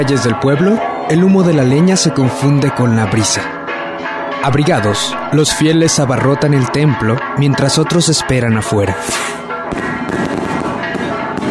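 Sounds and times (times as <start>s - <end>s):
speech: 0.0s - 3.6s, 4.4s - 9.9s
fireworks and rockets exploding at a Three Kings village festival in Cajititlán: 9.0s - 11.5s.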